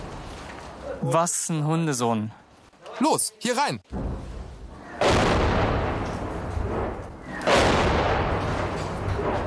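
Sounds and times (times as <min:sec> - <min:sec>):
speech: 0:01.1 - 0:04.1
loud blast possibly tank cannon fire: 0:03.9 - 0:09.4.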